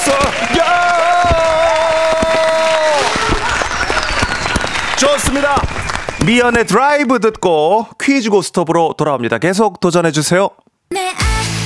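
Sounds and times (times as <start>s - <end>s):
applause: 0.0s - 7.2s
firecrackers popping: 0.0s - 7.5s
sustained gliding whistling tones: 3.0s - 6.7s
speech: 6.3s - 11.2s.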